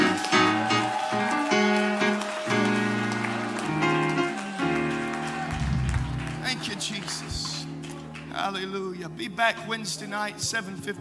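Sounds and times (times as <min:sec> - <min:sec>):
audience clapping: 0:00.0 - 0:08.7
speech: 0:08.5 - 0:10.9.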